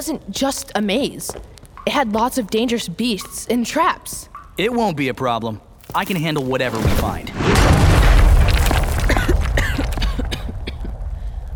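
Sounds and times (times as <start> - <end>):
speech: 0.0 - 7.5
heavy door dropping shut: 6.7 - 9.4.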